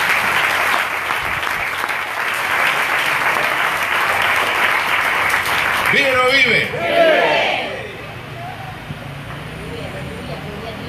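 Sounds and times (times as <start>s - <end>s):
audience applause: 0.0s - 7.4s
speech: 5.9s - 7.0s.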